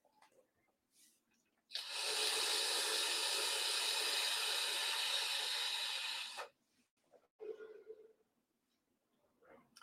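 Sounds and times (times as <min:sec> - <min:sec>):
vape device hissing during a puff: 0:01.8 - 0:06.6.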